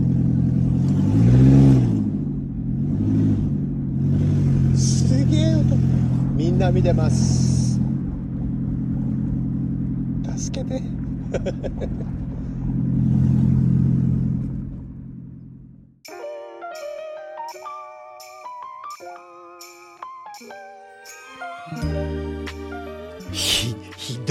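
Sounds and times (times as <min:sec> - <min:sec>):
small sports car engine running: 0:00.0 - 0:16.1
speech: 0:06.6 - 0:07.5, 0:10.7 - 0:12.2
laughter: 0:11.2 - 0:12.2, 0:23.4 - 0:24.2.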